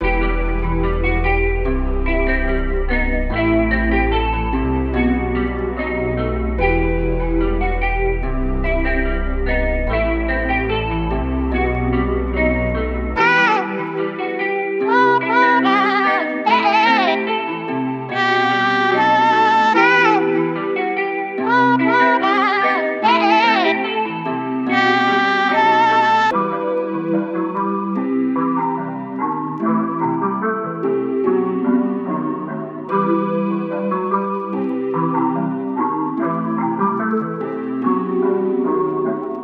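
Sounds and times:
music track at 146 BPM: 0.0s - 39.4s.

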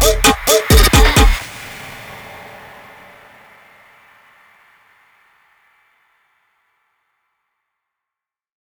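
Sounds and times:
Brazilian breakbeat with bass: 0.0s - 1.4s.

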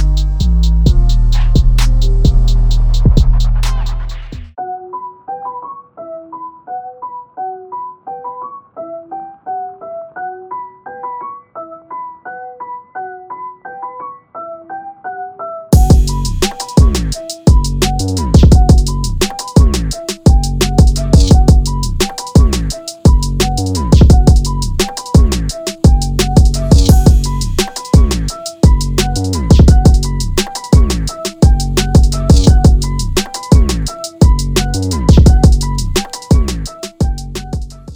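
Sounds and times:
trap beat: 0.0s - 4.5s, 15.8s - 37.9s.

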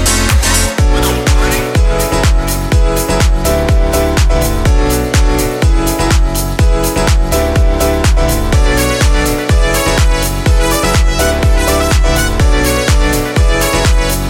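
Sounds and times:
pop piano house music: 0.0s - 14.2s.

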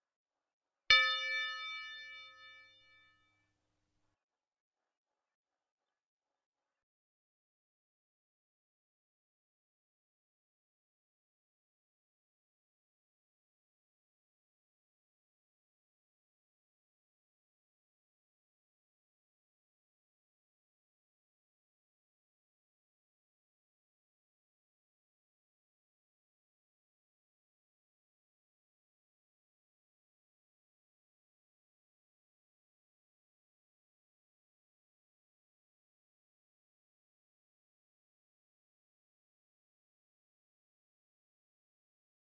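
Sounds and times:
bells at 162 BPM in A minor: 0.9s - 3.0s.

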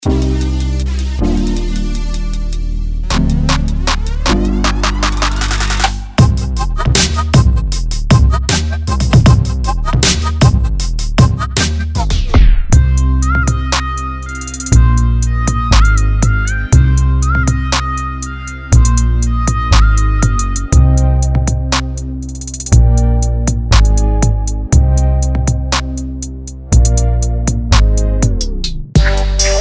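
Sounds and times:
trap beat made with Serum synthesizer: 0.0s - 29.5s.

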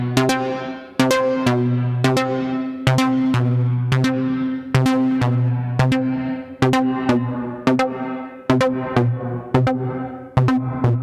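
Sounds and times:
chord loop in C minor at 128 bpm: 0.0s - 10.9s.

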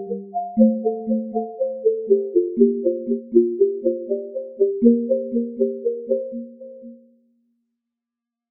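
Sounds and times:
soft floating synth loop in F major: 0.0s - 7.1s.

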